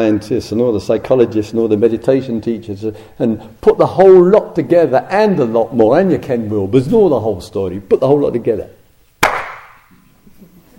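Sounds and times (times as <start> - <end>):
speech: 0.0 - 8.8
hand clap: 9.2 - 9.9.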